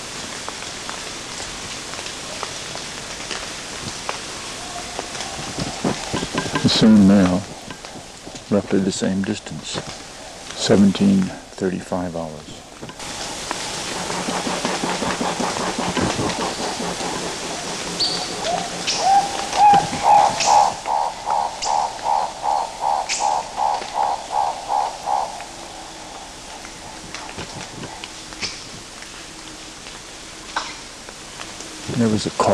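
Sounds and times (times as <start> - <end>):
black-billed turaco calls: 4.6 - 10.6, 12.6 - 29.4
speech: 6.8 - 7.6, 8.5 - 12.6, 32.2 - 32.5.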